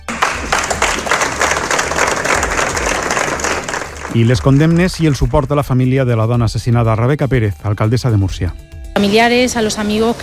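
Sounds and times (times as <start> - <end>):
applause ending a minute of silence: 0.0 - 5.7
speech: 4.2 - 10.2.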